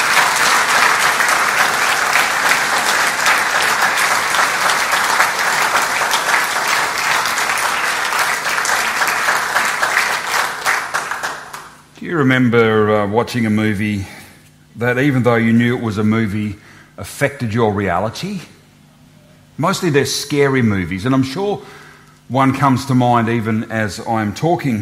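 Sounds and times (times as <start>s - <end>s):
audience applause: 0.0s - 11.8s
speech: 12.1s - 14.2s, 14.8s - 18.6s, 19.6s - 24.8s.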